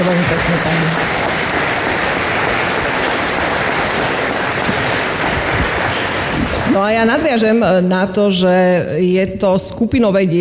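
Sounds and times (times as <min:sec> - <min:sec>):
audience applause: 0:00.0 - 0:07.3
speech: 0:06.8 - 0:10.3.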